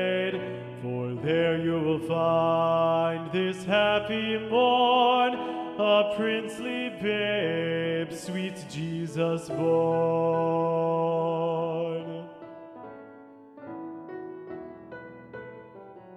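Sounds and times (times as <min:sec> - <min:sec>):
tenor voice singing a carol: 0:00.0 - 0:12.5.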